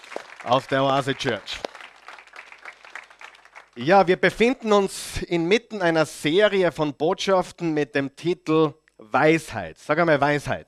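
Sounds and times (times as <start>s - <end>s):
audience applause at Oase Church: 0.0s - 3.9s
speech: 0.4s - 1.6s, 3.8s - 10.6s.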